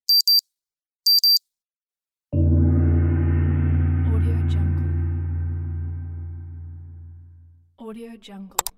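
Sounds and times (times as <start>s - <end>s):
infographic sound effects: 2.4s - 7.6s.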